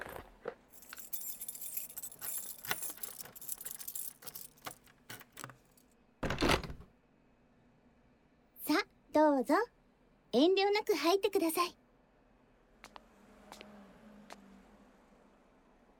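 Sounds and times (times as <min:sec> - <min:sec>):
front door being unlocked and opened: 0:00.8 - 0:05.8
speech: 0:09.4 - 0:09.7, 0:10.4 - 0:11.8.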